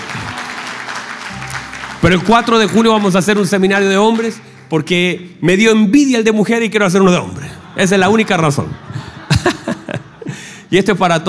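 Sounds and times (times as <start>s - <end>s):
women applauding: 0.0s - 5.0s
speech: 2.0s - 9.1s, 10.7s - 11.2s
laughter: 7.0s - 10.6s.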